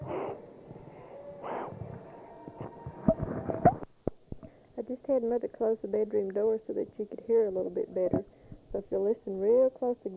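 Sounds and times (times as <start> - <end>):
woman breathing: 0.0 - 2.2, 4.4 - 4.8, 8.2 - 8.8
speech: 5.1 - 10.1.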